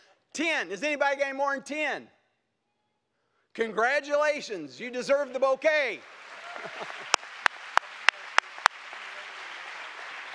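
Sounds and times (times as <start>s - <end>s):
speech: 0.4s - 2.2s, 3.6s - 7.0s
audience clapping: 6.0s - 10.3s.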